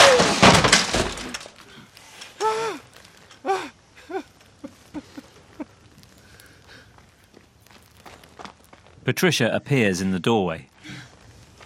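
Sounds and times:
glass and objects smashing in a garage: 0.0s - 1.6s
speech: 9.1s - 10.7s.

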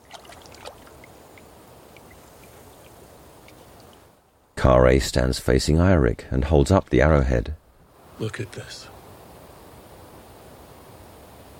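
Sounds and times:
water trickling and lapping at a waterside as blood is rinsed off an arrow: 0.0s - 4.3s
speech: 4.6s - 7.6s, 8.2s - 9.0s.

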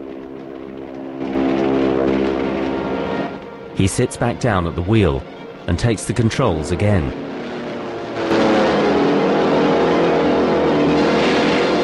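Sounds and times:
burning propeller aeroplane with its tail on fire passing overhead: 0.0s - 11.8s
speech: 3.8s - 7.3s.

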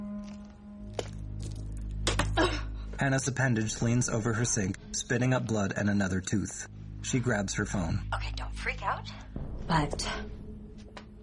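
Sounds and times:
footsteps crunching on a pile of broken glass in a basement: 0.0s - 2.4s
low steady drone: 0.0s - 11.2s
speech: 2.4s - 10.3s.

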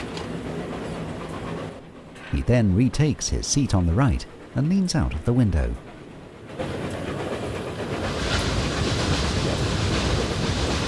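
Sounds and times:
train running under bridges with roar of wheels and rushing air: 0.0s - 10.8s
speech: 2.3s - 5.9s.

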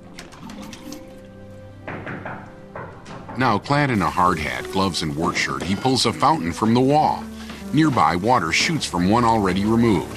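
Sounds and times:
tapping on wall tiles: 1.8s - 3.6s
knocks on tile: 1.9s - 3.5s
speech: 3.4s - 10.1s.

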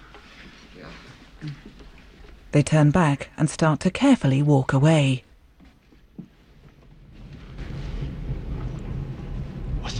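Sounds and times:
speech: 0.9s - 1.7s, 2.5s - 5.2s
rumble of an approaching train: 6.4s - 9.9s.

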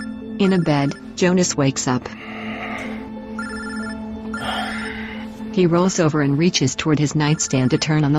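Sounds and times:
phone ringing on a nightstand beside a bed: 0.0s - 1.2s, 3.4s - 4.5s, 7.2s - 8.1s
speech: 0.4s - 2.9s, 5.6s - 8.1s.

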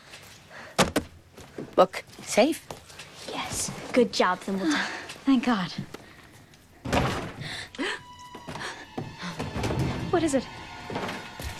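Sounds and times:
speech: 1.8s - 2.8s, 4.0s - 5.9s, 10.2s - 10.6s
someone forcing their way through a front door: 6.8s - 7.5s, 8.5s - 11.5s.

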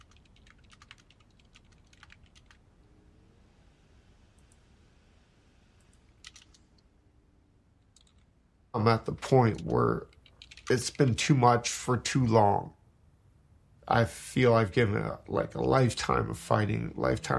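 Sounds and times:
typing on a computer keyboard in a back room of a home: 0.0s - 2.6s, 5.9s - 6.6s, 7.9s - 8.3s, 9.4s - 11.3s
hiss: 0.0s - 17.3s
speech: 8.8s - 10.1s, 10.7s - 12.8s, 13.9s - 17.3s.

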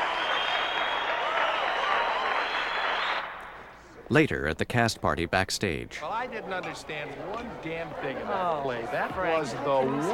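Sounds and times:
audience applause and standing ovation: 0.0s - 3.4s
speech: 4.1s - 10.1s.

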